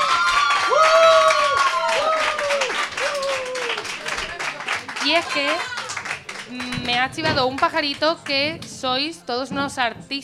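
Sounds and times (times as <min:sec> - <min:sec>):
drawn-out tonal voices cheering or singing: 0:00.0 - 0:06.2
studio audience clapping for guests: 0:00.0 - 0:08.7
speech: 0:05.1 - 0:05.7, 0:06.5 - 0:10.2.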